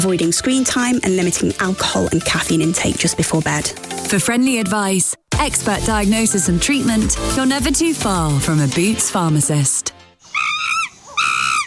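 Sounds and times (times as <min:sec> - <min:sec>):
speech: 0:00.0 - 0:10.0
monkey calling in a jungle: 0:10.2 - 0:11.6.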